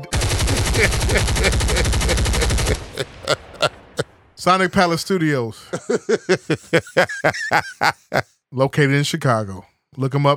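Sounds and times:
automatic gunfire sound effect: 0.1 - 3.0
single gunshots: 0.1 - 4.2
laughter: 0.4 - 4.1, 5.6 - 8.3
speech: 0.8 - 3.5, 4.4 - 10.3.

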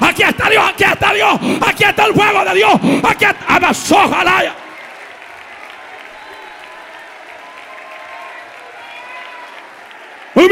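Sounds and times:
speech: 0.2 - 4.6
crowd clapping: 4.0 - 10.5.

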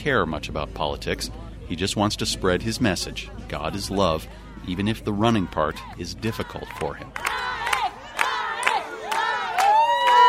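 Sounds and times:
speech: 0.0 - 7.6
steady crowd din at the Jerusalem marathon: 0.0 - 10.2
kindergartners shouting high-pitched cheers for a marathon runner: 5.2 - 10.2.

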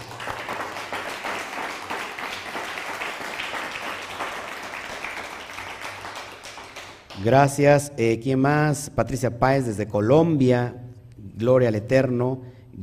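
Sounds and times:
applause: 0.0 - 7.4
speech: 7.2 - 10.8, 11.4 - 12.8.

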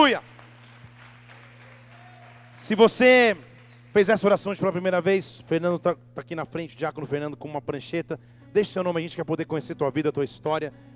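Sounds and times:
speech: 0.0 - 0.3, 2.6 - 10.9
church audience applauding: 0.0 - 4.2.

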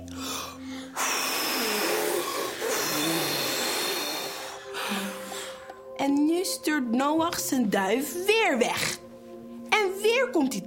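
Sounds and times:
children blowing hard to imitate wind: 0.1 - 5.7
speech: 6.8 - 9.0, 10.2 - 10.6.

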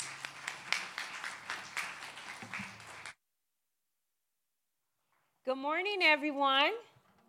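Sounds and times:
audience applause: 0.0 - 3.2
speech: 5.5 - 6.9.

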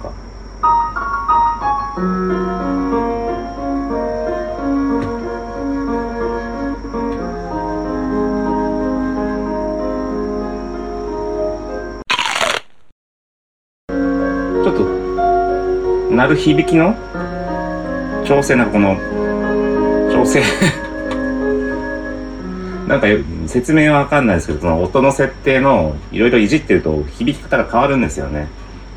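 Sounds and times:
piano playing: 0.6 - 12.0, 13.9 - 23.2
speech: 16.3 - 17.1, 18.3 - 19.3, 20.2 - 20.8, 22.9 - 28.6
laughter: 20.3 - 21.0.

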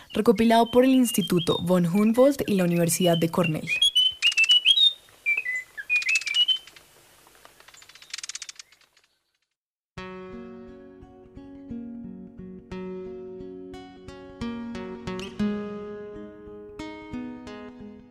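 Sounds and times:
Munchique wood wren song: 0.0 - 9.6
speech: 0.2 - 3.9
instrumental music: 10.0 - 18.1.

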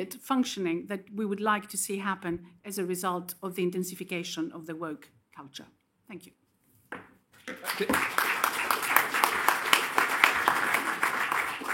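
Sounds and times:
speech: 0.0 - 8.3
audience applause: 7.5 - 11.7.

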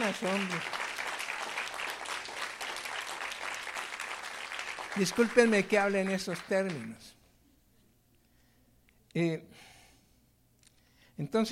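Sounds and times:
audience applause: 0.0 - 7.1
speech: 0.1 - 0.8, 5.0 - 7.2, 9.2 - 9.7, 11.2 - 11.5.

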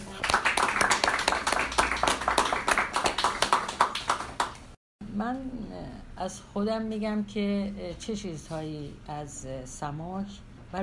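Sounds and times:
audience applause: 0.0 - 4.6
speech: 6.2 - 10.8.

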